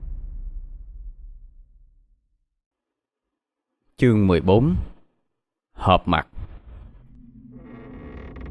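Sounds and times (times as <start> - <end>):
speech: 4.0 - 4.9, 5.8 - 6.3
wooden door creaking open: 6.6 - 8.4.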